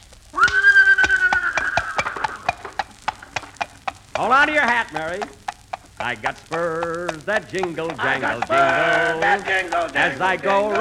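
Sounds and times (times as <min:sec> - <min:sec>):
horse hooves clip-clopping pulling a buggy: 0:00.0 - 0:10.8
horse pulling a buggy whinnying: 0:00.4 - 0:02.7
speech: 0:04.2 - 0:05.4, 0:06.0 - 0:10.8.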